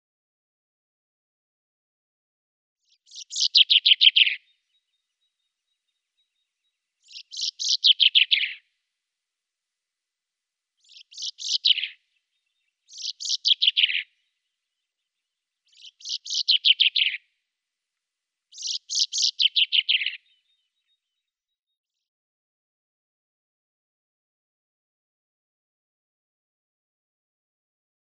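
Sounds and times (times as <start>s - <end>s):
common chaffinch singing: 2.8s - 8.8s, 10.8s - 17.4s, 18.5s - 21.3s.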